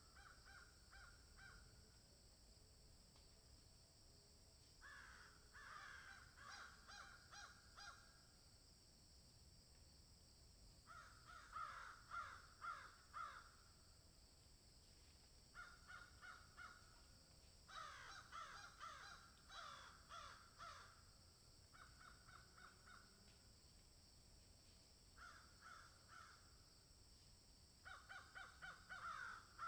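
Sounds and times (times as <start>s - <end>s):
crow giving hoarse downslurred caws: 0.2s - 1.6s, 4.8s - 8.1s, 10.9s - 13.6s, 15.6s - 17.0s, 17.7s - 21.0s, 21.7s - 23.1s, 25.2s - 26.4s, 27.8s - 29.6s.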